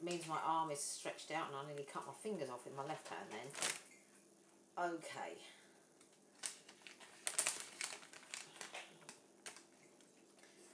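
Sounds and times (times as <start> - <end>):
speech: 0.1 - 3.8, 4.8 - 5.6
plastic bag on a kitchen worktop crinkling as it is torn open: 3.3 - 4.0, 6.2 - 10.7.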